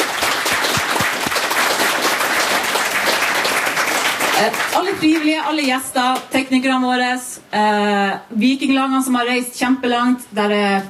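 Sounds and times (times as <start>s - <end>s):
audience applause: 0.0s - 5.3s
speech: 4.4s - 10.8s.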